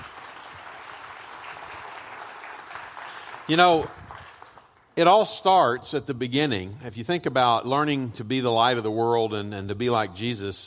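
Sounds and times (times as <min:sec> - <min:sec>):
audience applause: 0:00.0 - 0:04.9
speech: 0:03.5 - 0:04.0, 0:05.0 - 0:10.6.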